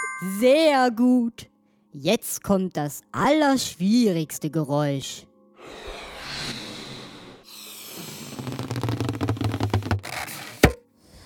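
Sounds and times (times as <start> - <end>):
speech: 0.2 - 5.9
balloon rubbing squeaks: 7.5 - 10.8.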